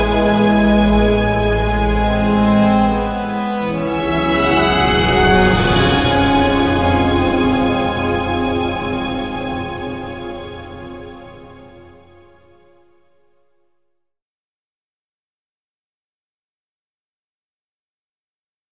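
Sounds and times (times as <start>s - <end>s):
instrumental music: 0.0s - 13.9s.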